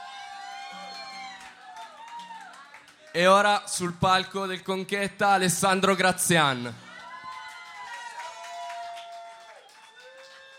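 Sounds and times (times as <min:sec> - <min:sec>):
crowd cheering and whooping: 0:00.0 - 0:02.8, 0:06.8 - 0:10.5
speech: 0:03.2 - 0:06.8.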